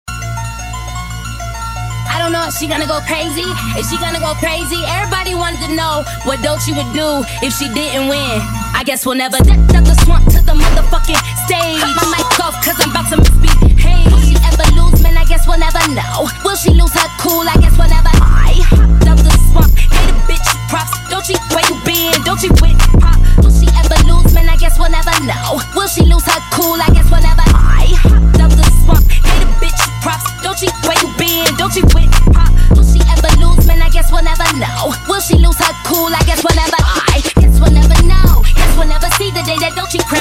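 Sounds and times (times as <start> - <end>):
hip hop music: 0.1 - 40.1.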